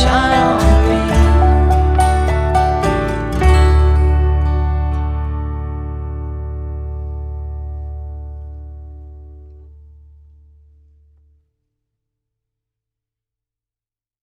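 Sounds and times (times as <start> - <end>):
acoustic music: 0.0 - 11.0.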